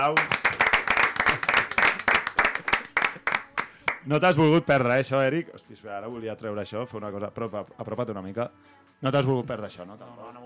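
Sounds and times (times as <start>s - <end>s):
speech: 0.0s - 0.4s, 4.0s - 10.4s
audience applause: 0.1s - 4.0s.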